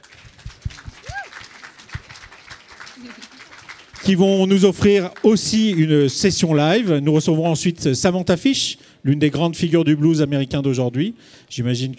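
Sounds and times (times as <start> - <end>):
audience applause: 0.0 - 6.2
speech: 3.0 - 3.3, 4.0 - 11.9.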